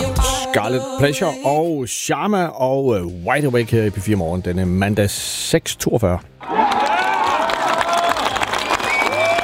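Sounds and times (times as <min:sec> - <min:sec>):
speech: 0:00.5 - 0:06.8
crowd cheering at golf tournament in Kerteminde: 0:06.4 - 0:09.4.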